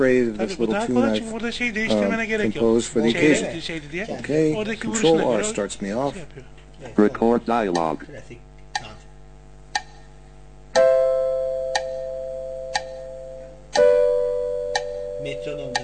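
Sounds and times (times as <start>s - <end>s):
speech: 0.0s - 8.4s, 15.2s - 15.8s
metronome ticking: 7.6s - 8.0s, 9.7s - 10.1s, 10.7s - 15.8s.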